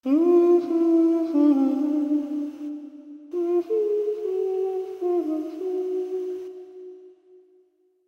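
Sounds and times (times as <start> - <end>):
person humming: 0.0 - 7.2.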